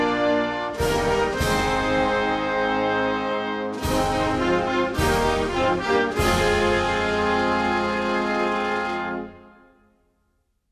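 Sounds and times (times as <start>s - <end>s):
national anthem music: 0.0s - 10.2s.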